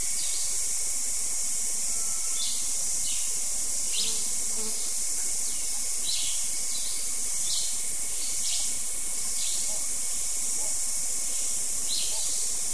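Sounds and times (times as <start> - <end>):
morning insects: 0.0 - 12.7
morning dawn chorus of birds: 1.9 - 3.3, 3.9 - 9.9, 10.6 - 12.6.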